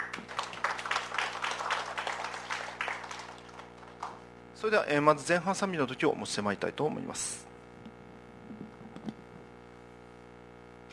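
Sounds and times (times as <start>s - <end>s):
audience applauding: 0.0s - 4.3s
speech: 4.6s - 7.5s.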